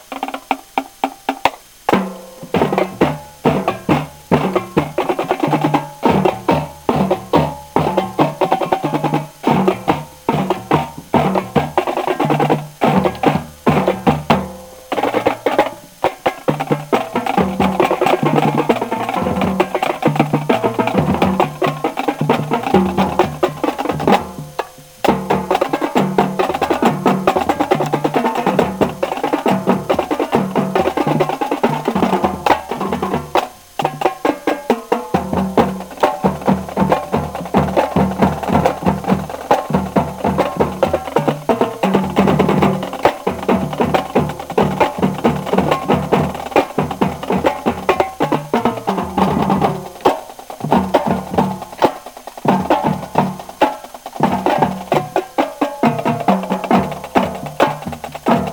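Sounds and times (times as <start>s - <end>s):
drumline cadence: 0.0s - 58.5s.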